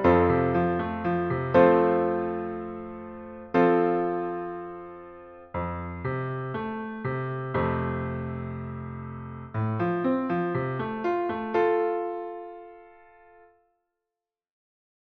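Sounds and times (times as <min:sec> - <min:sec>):
musical chords and rhythms: 0:00.0 - 0:13.3.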